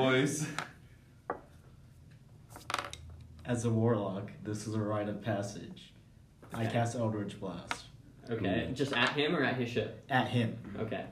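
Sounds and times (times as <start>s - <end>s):
speech: 0.0s - 0.7s, 3.5s - 11.1s
dice clattering across a hard tabletop: 2.5s - 3.1s.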